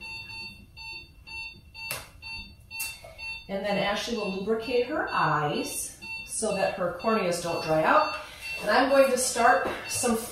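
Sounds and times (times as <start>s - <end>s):
heart rate monitor beeping during surgery: 0.0s - 10.3s
speech: 3.5s - 10.3s.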